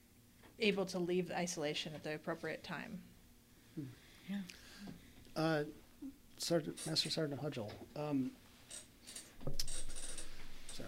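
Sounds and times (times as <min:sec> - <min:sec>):
speech: 0:00.6 - 0:03.1, 0:03.8 - 0:09.7
office chair creaking as it settles: 0:06.6 - 0:07.2, 0:08.6 - 0:10.8.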